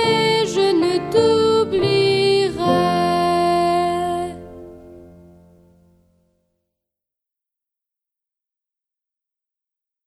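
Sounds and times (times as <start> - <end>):
traditional song: 0.0 - 4.6.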